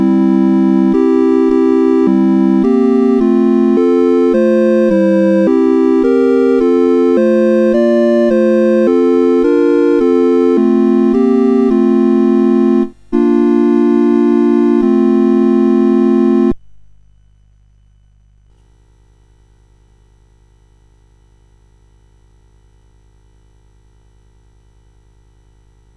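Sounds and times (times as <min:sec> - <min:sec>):
CSG 8580 sound chip: 0:00.0 - 0:16.6.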